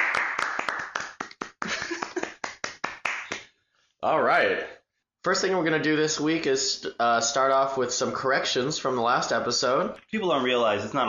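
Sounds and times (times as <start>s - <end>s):
several people clapping in quick uneven bursts: 0.0s - 3.6s
speech: 4.0s - 11.0s.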